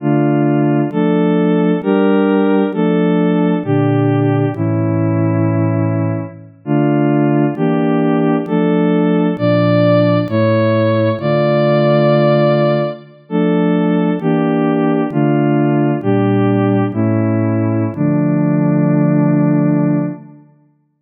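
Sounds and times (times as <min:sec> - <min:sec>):
hurdy-gurdy chorale: 0:00.0 - 0:20.2.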